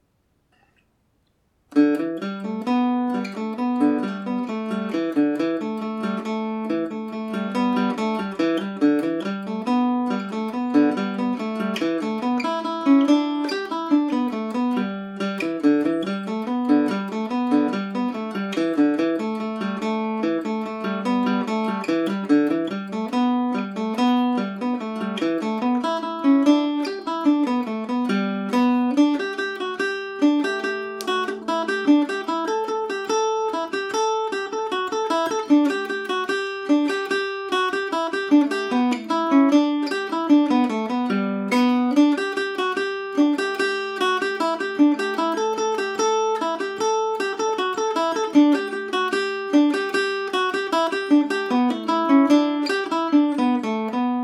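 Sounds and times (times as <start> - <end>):
Irish mandolin playing in G major: 1.7 - 54.2.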